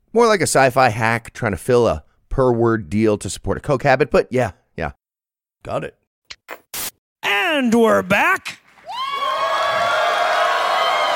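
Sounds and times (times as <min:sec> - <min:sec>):
speech: 0:00.1 - 0:05.0, 0:05.6 - 0:06.0, 0:07.6 - 0:08.6
live audience applause and cheering: 0:08.8 - 0:11.1.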